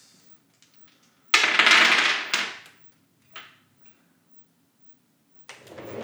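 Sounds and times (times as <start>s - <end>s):
dice rolling on a surface: 1.4s - 2.6s.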